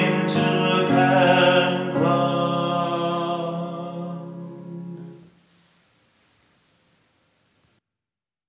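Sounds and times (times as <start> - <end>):
tenor singing: 0.0 - 5.3.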